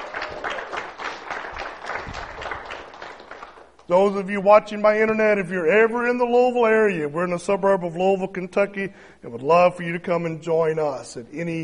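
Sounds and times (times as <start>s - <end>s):
audience applause: 0.0s - 3.8s
speech: 3.9s - 11.6s.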